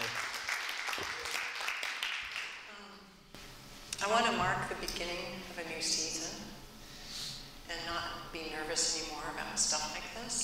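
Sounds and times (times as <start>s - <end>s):
audience applause: 0.0s - 2.6s
speech: 4.1s - 6.6s, 7.7s - 10.4s.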